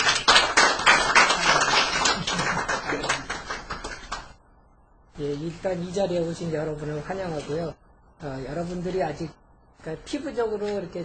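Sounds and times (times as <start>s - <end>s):
audience applause: 0.0s - 4.3s
speech: 5.4s - 11.0s.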